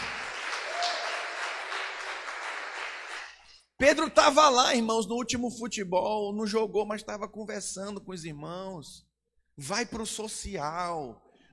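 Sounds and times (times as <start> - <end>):
audience applauding: 0.0 - 3.5
speech: 3.8 - 11.2.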